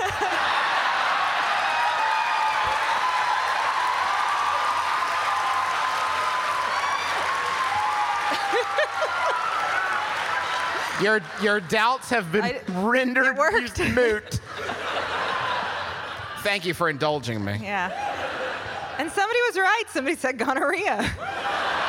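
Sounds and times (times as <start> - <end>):
laughter: 0.0 - 1.3, 7.9 - 17.1, 17.8 - 19.5, 20.6 - 21.8
audience clapping along to a song: 0.0 - 13.1
crowd cheers and whoops: 0.0 - 13.6, 14.4 - 16.9, 17.9 - 19.2, 21.2 - 21.8
speech: 11.0 - 14.8, 16.4 - 18.0, 19.0 - 21.6.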